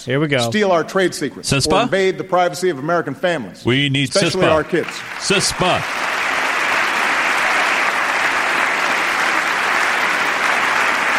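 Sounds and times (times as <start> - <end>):
speech: 0.0 - 6.1
standing audience applause: 4.2 - 11.1.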